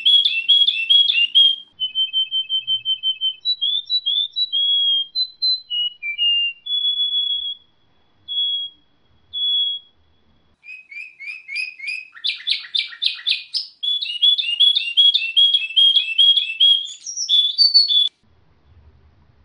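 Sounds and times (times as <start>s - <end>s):
Orphean warbler song: 0.0s - 18.3s.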